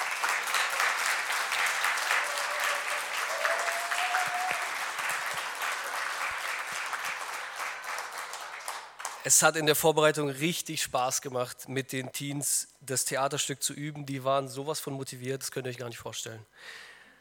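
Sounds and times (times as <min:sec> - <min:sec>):
audience applause: 0:00.0 - 0:09.2
speech: 0:09.2 - 0:16.9.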